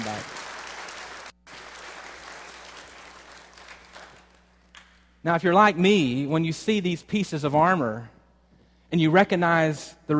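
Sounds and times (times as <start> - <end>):
crowd applause: 0.0 - 4.4
speech: 5.2 - 8.2, 8.9 - 10.1.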